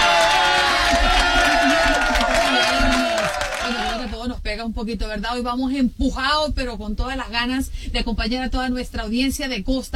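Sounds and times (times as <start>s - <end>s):
applause and cheering sound effect: 0.0s - 4.2s
speech: 4.6s - 9.9s.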